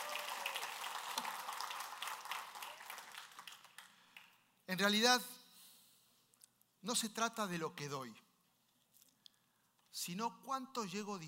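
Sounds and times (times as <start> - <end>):
audience applause: 0.0 - 4.4
speech: 4.7 - 5.4, 6.8 - 8.2, 10.1 - 11.2.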